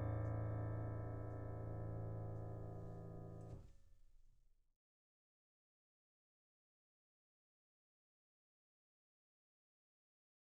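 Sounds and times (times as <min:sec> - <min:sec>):
instrumental piano: 0:00.0 - 0:04.0.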